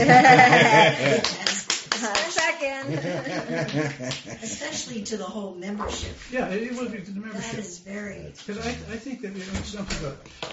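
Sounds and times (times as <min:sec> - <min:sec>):
laughter: 0:00.0 - 0:05.0
speech: 0:00.0 - 0:10.5
meeting applause: 0:00.9 - 0:02.6.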